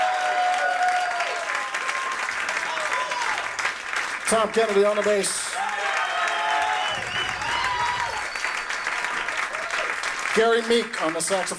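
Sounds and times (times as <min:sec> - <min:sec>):
audience applause: 0:00.0 - 0:11.5
speech: 0:04.3 - 0:05.6, 0:10.4 - 0:11.5
whistles: 0:06.0 - 0:09.3.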